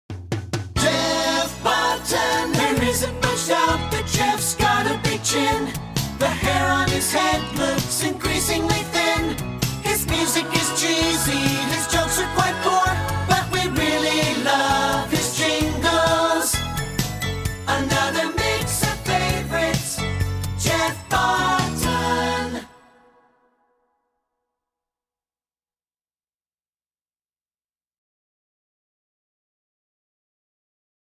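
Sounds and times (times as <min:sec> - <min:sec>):
song: 0:00.8 - 0:23.3.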